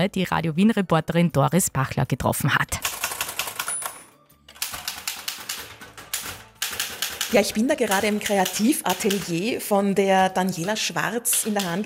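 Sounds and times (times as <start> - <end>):
speech: 0.0 - 2.9, 7.3 - 11.8
typing on a typewriter: 2.8 - 9.7, 10.4 - 11.8.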